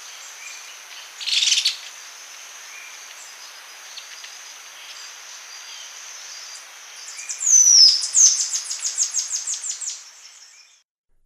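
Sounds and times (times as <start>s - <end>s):
Montane Woodcreeper calling in Ecuador: 0.2s - 2.0s, 2.7s - 10.8s.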